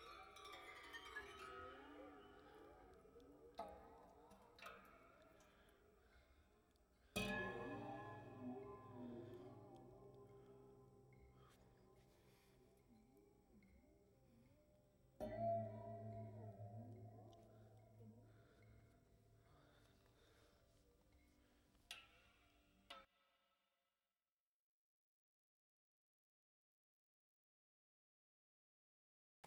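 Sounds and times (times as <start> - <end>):
waterphone: 0.0 - 6.5, 7.1 - 20.5.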